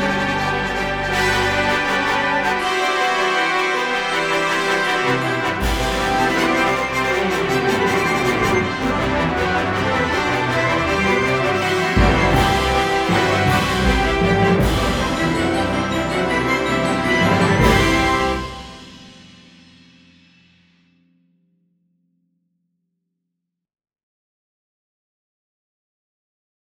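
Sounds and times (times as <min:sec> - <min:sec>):
horns playing in fifths: 0:00.0 - 0:19.4.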